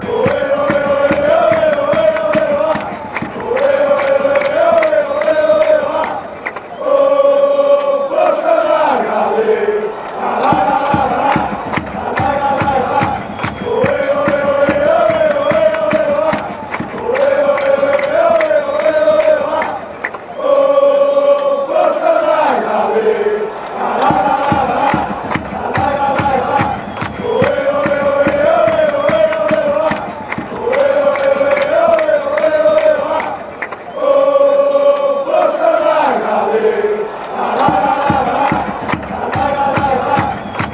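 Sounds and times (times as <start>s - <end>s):
crowd chanting: 0.0s - 40.7s.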